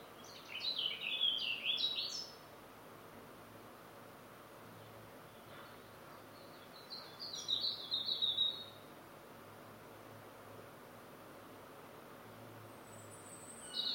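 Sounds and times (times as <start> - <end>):
morning birdsong: 0.0 - 2.4, 4.7 - 8.8, 12.7 - 13.9.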